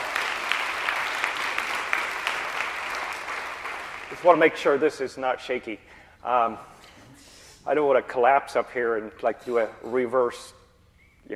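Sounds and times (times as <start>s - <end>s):
audience applause: 0.0s - 4.6s
speech: 4.1s - 6.7s, 7.6s - 10.6s.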